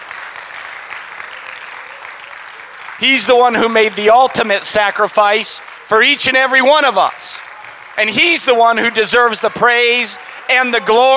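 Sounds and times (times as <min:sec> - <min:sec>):
audience clapping in praise: 0:00.0 - 0:11.1
speech: 0:03.0 - 0:11.1.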